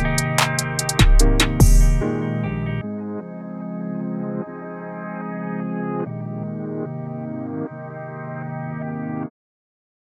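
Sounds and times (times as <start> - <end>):
emo rap: 0.0 - 2.7.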